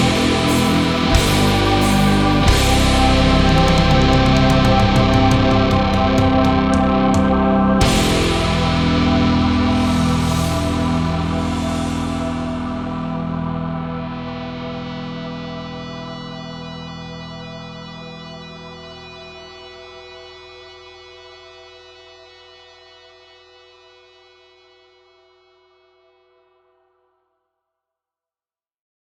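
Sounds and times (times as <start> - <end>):
instrumental music: 0.0 - 15.6.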